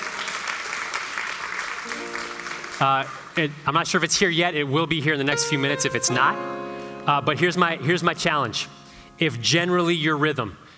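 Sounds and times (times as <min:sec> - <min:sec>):
audience clapping: 0:00.0 - 0:03.7
speech: 0:02.8 - 0:10.6.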